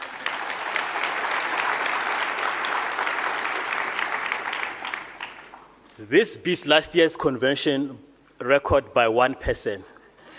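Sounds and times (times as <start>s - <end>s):
convention audience applause: 0.0s - 5.7s
speech: 6.0s - 9.9s.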